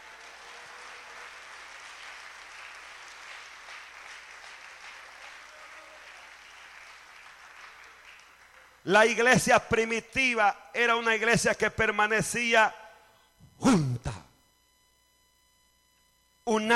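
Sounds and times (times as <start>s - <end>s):
applause: 0.0s - 8.9s
speech: 8.9s - 12.8s, 13.6s - 13.9s.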